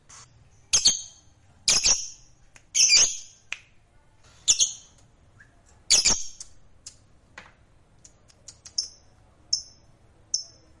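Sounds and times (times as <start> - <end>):
fighter-type lovebird chirps: 0.3 - 3.4, 4.4 - 6.6, 8.5 - 10.7.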